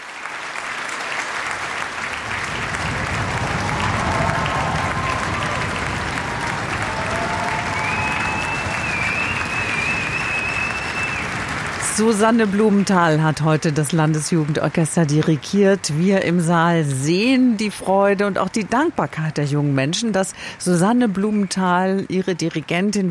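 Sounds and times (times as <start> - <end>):
audience cheering in Stadthalle Kleve: 0.0 - 15.2
audience applause in Stadthalle Kleve: 0.0 - 17.7, 20.0 - 23.1
audience drumming in Stadthalle Kleve: 2.4 - 11.7
speech: 12.0 - 23.1.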